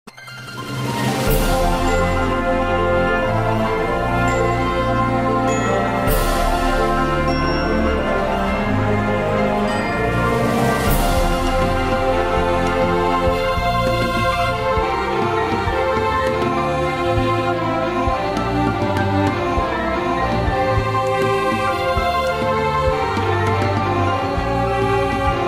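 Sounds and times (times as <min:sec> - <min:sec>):
orchestral remix: 0:00.1 - 0:25.4.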